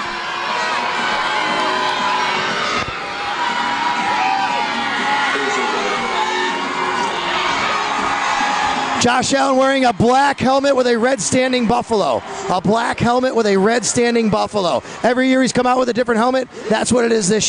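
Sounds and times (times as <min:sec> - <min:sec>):
stadium crowd cheering: 0:00.0 - 0:17.4
speech: 0:09.0 - 0:17.4.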